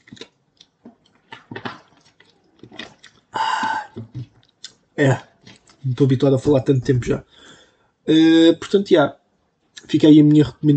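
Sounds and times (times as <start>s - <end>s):
person drinking from a bottle: 0.0s - 4.8s
speech: 5.0s - 7.4s, 8.0s - 9.2s, 9.9s - 10.7s.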